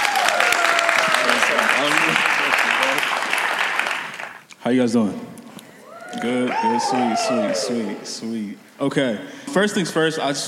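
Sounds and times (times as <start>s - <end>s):
audience clapping: 0.0s - 4.5s, 6.2s - 8.0s
speech: 4.7s - 5.3s, 6.1s - 10.4s.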